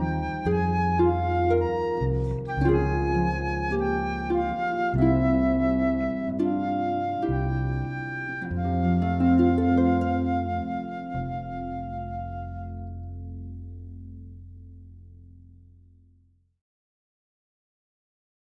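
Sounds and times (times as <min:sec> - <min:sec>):
flute: 0:00.0 - 0:13.5
harp: 0:00.0 - 0:15.1
bass: 0:00.0 - 0:16.6.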